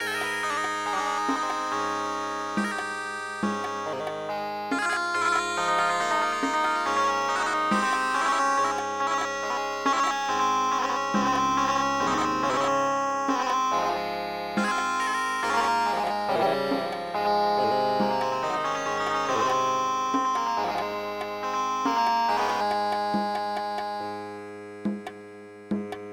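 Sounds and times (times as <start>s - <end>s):
traditional Indian dance music: 0.0s - 26.1s.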